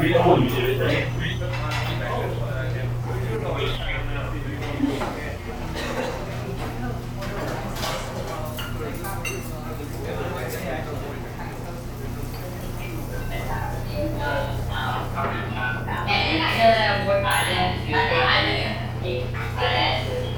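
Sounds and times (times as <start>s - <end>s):
cafe ambience: 0.0s - 20.3s.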